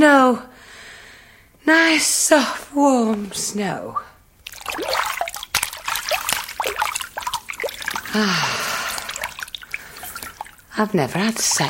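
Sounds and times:
speech: 0.0s - 0.5s, 1.6s - 4.1s, 8.2s - 8.7s, 10.8s - 11.6s
water dripping in a bubble bath: 4.4s - 11.6s.

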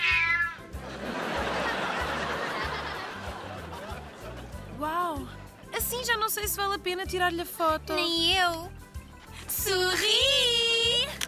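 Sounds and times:
cat meowing: 0.0s - 0.7s
laughter: 0.7s - 4.8s
speech: 6.2s - 8.8s, 9.6s - 10.6s.

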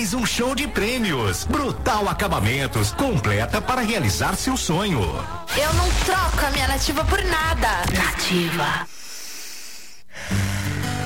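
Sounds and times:
speech: 0.0s - 9.0s
child breathing calmly: 8.9s - 10.9s.

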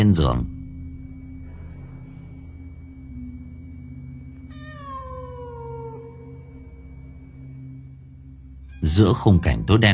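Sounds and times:
low steady hum: 0.0s - 9.9s
speech: 0.1s - 0.6s, 8.8s - 9.9s
black cat yowling at an open window: 4.5s - 6.8s.

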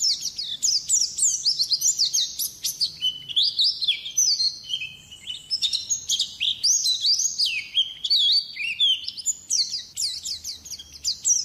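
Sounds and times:
bird song with chirps, trills and whistled notes: 0.0s - 11.4s.

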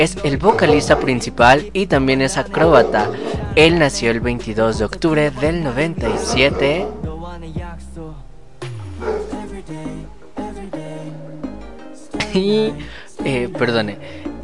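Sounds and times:
speech: 0.0s - 7.0s, 12.4s - 14.2s
dog barking: 0.5s - 1.2s, 2.6s - 3.5s, 6.0s - 7.1s, 9.0s - 9.4s.

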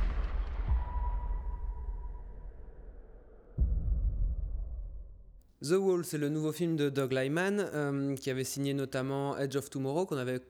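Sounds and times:
low rumbling drone in a film scene: 0.0s - 5.4s
speech: 5.6s - 10.4s.

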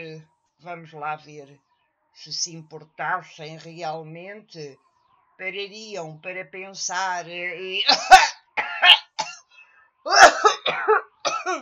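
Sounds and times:
speech: 0.2s - 8.3s
coughing: 7.7s - 11.6s
throat clearing: 7.9s - 9.5s, 10.1s - 11.6s.

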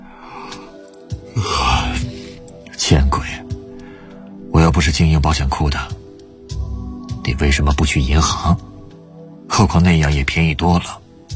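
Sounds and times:
person yawning: 0.1s - 2.5s
speech: 2.8s - 3.6s, 4.7s - 6.0s, 7.3s - 8.6s, 9.6s - 11.0s.

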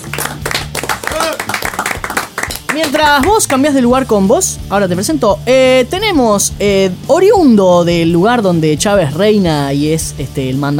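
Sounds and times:
audience clapping: 0.0s - 3.8s
speech: 2.8s - 10.7s.

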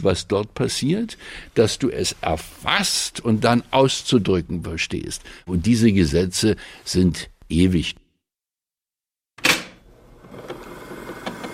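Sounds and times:
speech: 0.0s - 8.0s
mechanical clunk: 9.4s - 9.9s
old tape recorder motor running: 10.2s - 11.5s.

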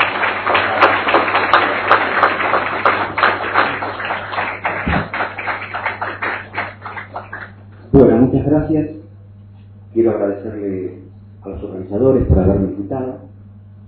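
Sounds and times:
audience applause: 0.0s - 7.6s
speech: 8.0s - 9.0s, 10.1s - 13.4s.

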